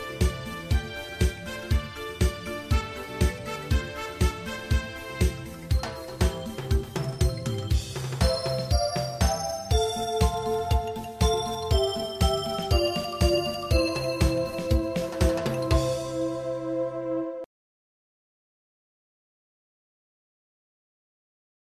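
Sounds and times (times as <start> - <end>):
music beat: 0.0 - 17.2.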